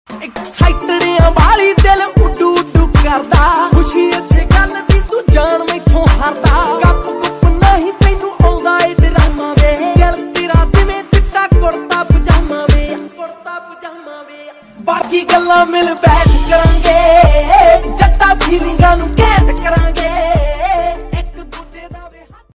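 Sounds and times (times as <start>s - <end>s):
Desi Punjabi ringtone music: 0.2s - 13.4s, 14.6s - 22.5s.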